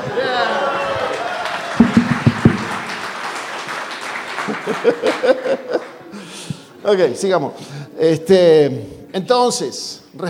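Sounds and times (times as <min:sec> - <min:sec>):
audience applause: 0:00.0 - 0:06.3
laughter: 0:04.3 - 0:06.8
speech: 0:04.8 - 0:05.9, 0:06.8 - 0:10.2.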